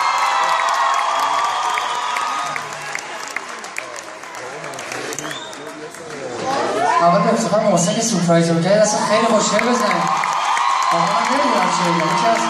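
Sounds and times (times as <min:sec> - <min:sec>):
audience cheering and whoops: 0:00.0 - 0:03.6, 0:06.5 - 0:07.2, 0:08.9 - 0:12.4
audience applause at a music performance: 0:00.0 - 0:07.0, 0:09.1 - 0:12.4
speech: 0:07.5 - 0:10.2, 0:10.9 - 0:12.4.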